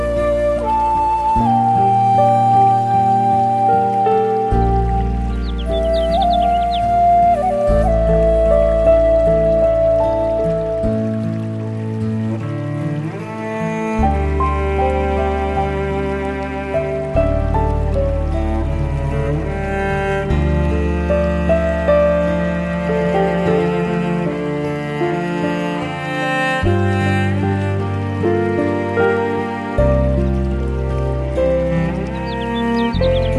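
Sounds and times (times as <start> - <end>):
Japanese music: 0.0 - 33.3
stream flowing: 0.0 - 33.3
birds: 4.9 - 7.6, 31.3 - 33.3.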